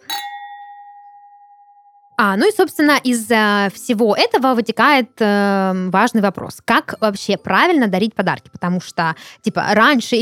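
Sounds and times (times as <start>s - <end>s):
glasses clinking in a toast: 0.0s - 2.3s
speech: 2.2s - 10.2s.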